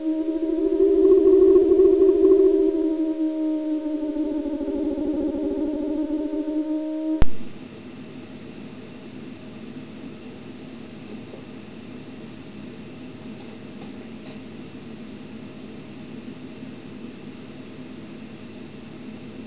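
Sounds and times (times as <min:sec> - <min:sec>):
alien ambience: 0:00.0 - 0:07.6.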